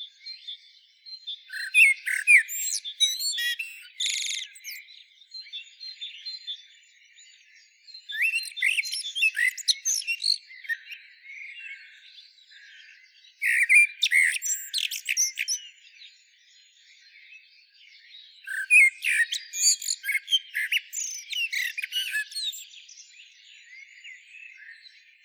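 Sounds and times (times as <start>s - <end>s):
common blackbird whistling and twittering: 1.2s - 16.7s, 18.3s - 25.2s.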